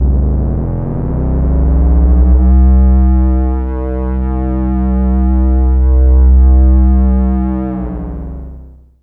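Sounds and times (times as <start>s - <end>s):
sub bass wave: 0.0s - 8.6s.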